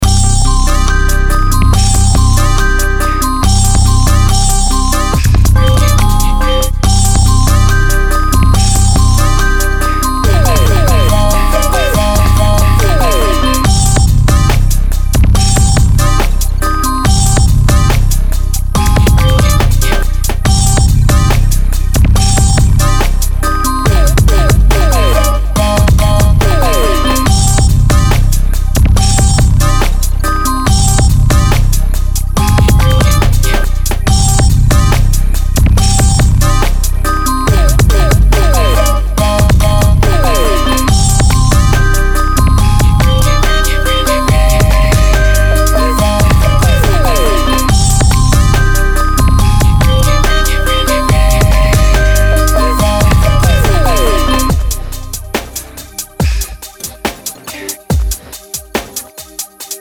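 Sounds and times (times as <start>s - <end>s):
beat: 0.0s - 59.7s.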